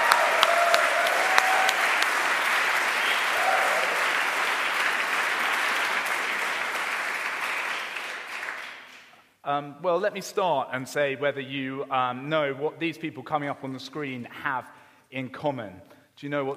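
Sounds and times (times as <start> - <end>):
audience applause for musicians: 0.0 - 9.1
speech: 9.5 - 16.5.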